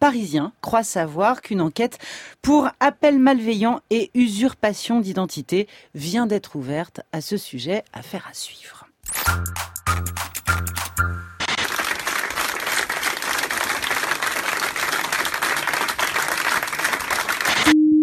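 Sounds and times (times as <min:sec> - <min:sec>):
speech: 0:00.1 - 0:10.2
spontaneous applause in a France 2 newsroom meeting: 0:10.2 - 0:17.8.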